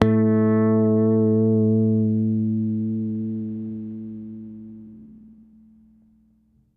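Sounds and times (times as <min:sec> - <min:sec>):
OCTIVER bass note A2: 0:00.0 - 0:06.0.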